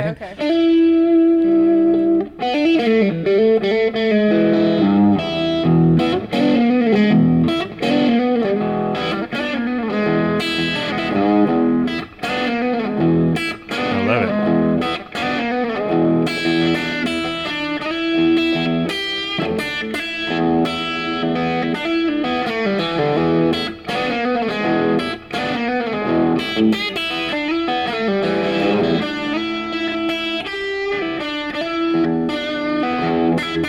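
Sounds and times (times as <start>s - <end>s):
electric guitar played through a small amp: 0.0s - 33.6s
speech: 0.1s - 0.9s.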